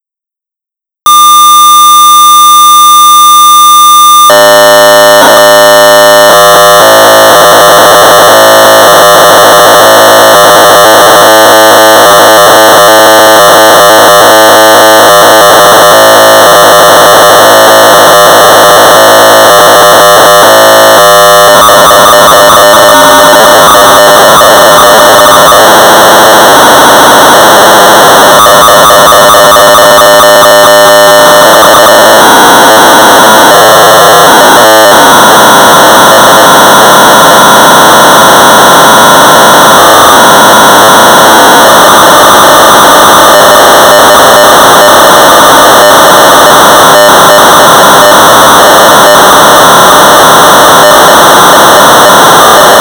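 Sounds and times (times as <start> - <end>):
1200 baud modem data tones: 1.0 - 52.7.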